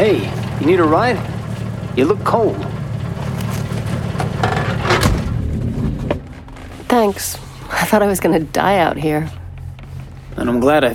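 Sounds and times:
yellow Chevy Caprice gypsy cab engine rumbling: 0.0 - 10.9
speech: 0.1 - 1.4, 2.0 - 2.8, 6.9 - 9.4, 10.4 - 10.9.

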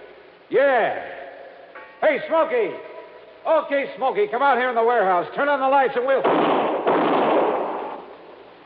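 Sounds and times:
speech: 0.5 - 1.2, 2.0 - 6.7
gunshot fired inside a warehouse during a shootout: 6.2 - 8.1.

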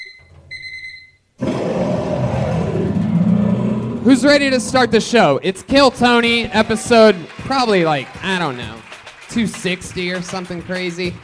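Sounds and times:
cat roar sound effect: 1.4 - 5.4
speech: 4.0 - 11.2.

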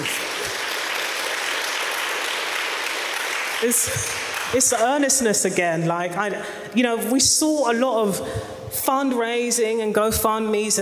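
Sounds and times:
audience applause: 0.0 - 4.6
speech: 3.6 - 10.8.

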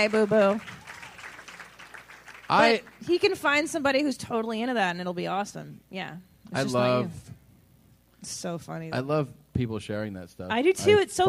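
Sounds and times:
speech: 0.0 - 0.8, 2.5 - 7.4, 8.2 - 11.2
audience applause: 0.0 - 3.1.

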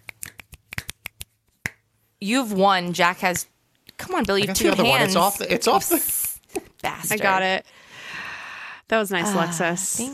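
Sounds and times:
finger snaps: 0.0 - 1.8
speech: 2.2 - 6.2, 6.8 - 7.8, 8.9 - 10.1.

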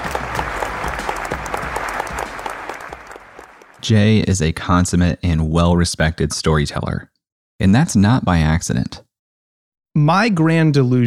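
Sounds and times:
audience applause: 0.0 - 3.8
speech: 3.8 - 9.0, 10.0 - 11.0.

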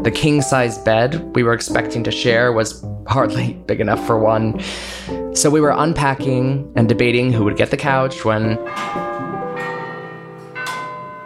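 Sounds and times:
speech: 0.0 - 9.1
clock tower bell ringing: 7.9 - 11.2.

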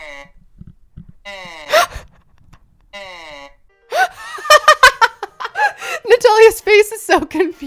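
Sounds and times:
reconstructed ancient Egyptian mummy voice making buzzy vowel moans: 0.0 - 2.2, 2.9 - 3.7
speech: 1.3 - 1.7, 6.4 - 7.6
laughter: 4.0 - 5.8.

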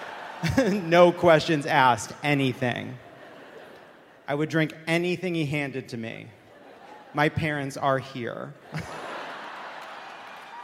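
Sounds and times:
audience applause: 0.0 - 0.9, 8.9 - 10.6
laughter: 0.0 - 1.3, 2.3 - 4.5, 6.4 - 7.4, 8.6 - 10.5
speech: 0.4 - 3.0, 4.3 - 6.4, 7.1 - 9.0.

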